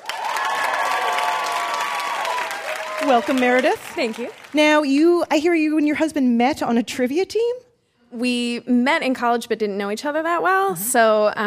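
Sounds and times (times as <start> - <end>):
studio audience cheering: 0.0 - 4.8
studio audience applause on a trivia game show: 0.0 - 5.0
speech: 3.1 - 11.4.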